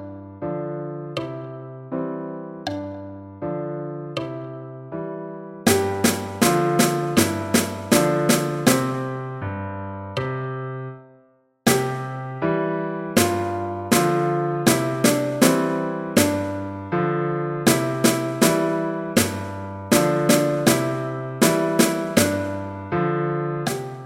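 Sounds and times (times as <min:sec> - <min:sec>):
piano: 0:00.0 - 0:24.0
snare drum: 0:05.7 - 0:09.1, 0:11.7 - 0:12.2, 0:13.2 - 0:16.8, 0:17.7 - 0:22.7, 0:23.7 - 0:24.0.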